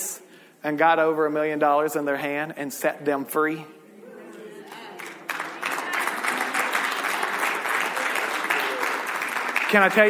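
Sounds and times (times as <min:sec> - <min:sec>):
speech: 0:00.6 - 0:03.8, 0:09.7 - 0:10.0
audience clapping: 0:04.7 - 0:10.0.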